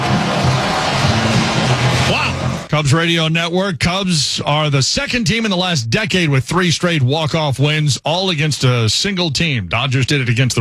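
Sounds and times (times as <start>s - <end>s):
stadium crowd cheering after a walk-off win: 0.0s - 3.3s
speech: 2.7s - 10.6s.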